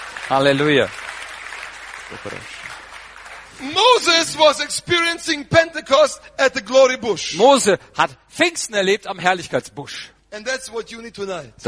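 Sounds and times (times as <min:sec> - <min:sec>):
congregation clapping at a church service: 0:00.0 - 0:04.8
speech: 0:00.3 - 0:01.0, 0:02.1 - 0:02.6, 0:03.6 - 0:11.6.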